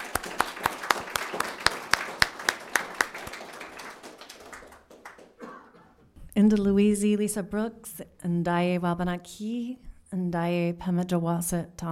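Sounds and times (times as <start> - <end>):
audience applause welcoming a speaker at an event on indigenous cultural revitalization: 0.0 - 6.0
speech: 6.4 - 11.8.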